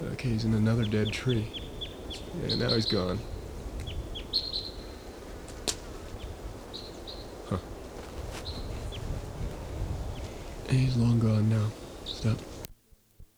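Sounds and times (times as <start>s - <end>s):
bird singing in the top of a tree: 0.0s - 12.7s
speech: 0.2s - 3.3s, 7.5s - 7.7s, 10.7s - 12.5s.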